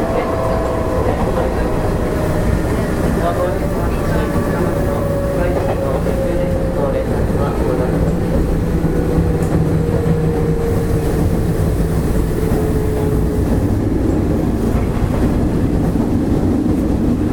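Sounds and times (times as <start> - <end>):
Nishi-Nippon Railroad 5000 series train running: 0.0 - 17.3.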